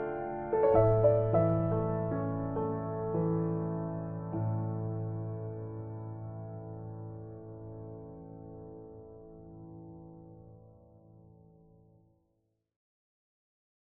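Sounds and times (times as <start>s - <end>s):
piano cover: 0.0s - 10.7s.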